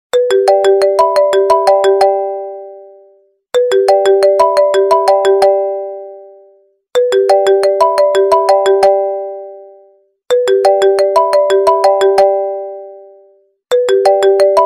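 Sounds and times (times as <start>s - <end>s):
iPhone official ringtone: 0.1s - 14.6s.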